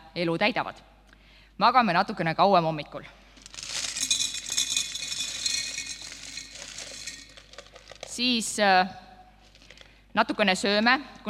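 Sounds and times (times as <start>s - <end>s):
speech: 0.2s - 1.0s, 1.6s - 3.2s, 8.2s - 9.0s, 10.1s - 11.2s
small stones poured into a glass jar: 3.4s - 8.2s.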